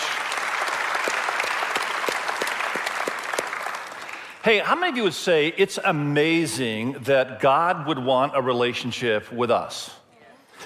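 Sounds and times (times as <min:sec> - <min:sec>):
audience applause welcoming new campus: 0:00.0 - 0:04.9
speech: 0:04.4 - 0:10.0.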